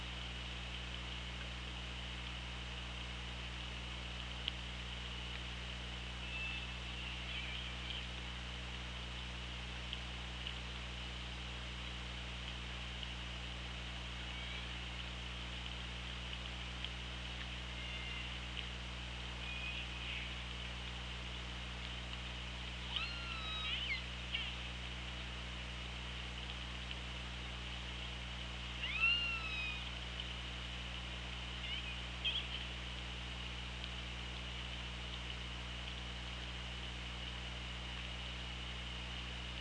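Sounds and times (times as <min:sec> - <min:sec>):
steady low underwater hum and hiss: 0:00.0 - 0:39.5
killer whale squealing calls: 0:22.9 - 0:24.5, 0:28.8 - 0:29.9.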